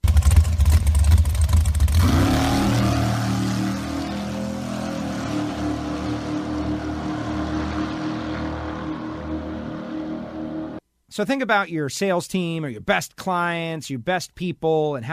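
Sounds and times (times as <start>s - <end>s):
dragster engine revving at a drag racing experience: 0.0s - 10.8s
speech: 11.2s - 15.1s.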